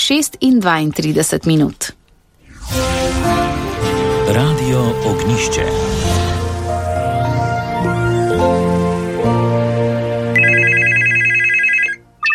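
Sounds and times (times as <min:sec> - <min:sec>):
speech: 0:00.1 - 0:02.0, 0:04.3 - 0:06.4
sustained tonal music: 0:02.4 - 0:11.2
telephone ringing: 0:10.3 - 0:12.3.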